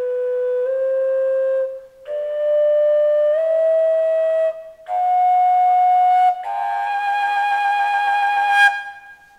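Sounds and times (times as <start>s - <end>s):
prototype fujara in natural G playing: 0.0s - 9.3s.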